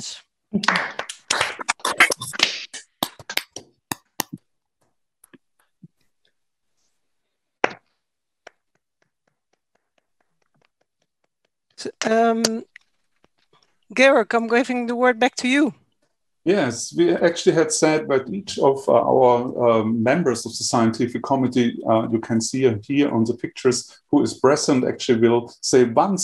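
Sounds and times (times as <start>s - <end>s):
speech: 0.0s - 0.9s, 12.0s - 12.7s, 14.0s - 15.8s, 16.4s - 26.2s
clapping and cheering over open microphones: 0.6s - 4.4s.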